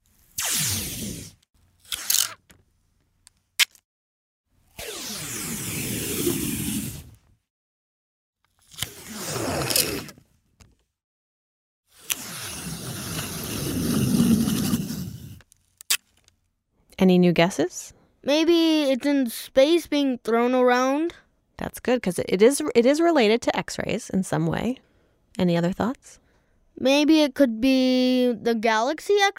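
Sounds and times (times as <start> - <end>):
Scotch tape being peeled in crackling strips: 0.1 - 2.6, 3.6 - 3.8, 8.5 - 10.2, 11.9 - 16.4
speech: 17.0 - 26.2, 26.8 - 29.3.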